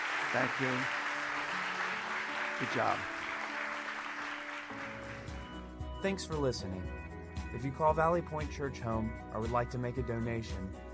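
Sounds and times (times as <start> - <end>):
church audience applause: 0.0 - 5.4
speech: 0.3 - 1.0, 2.6 - 3.2, 6.0 - 10.9.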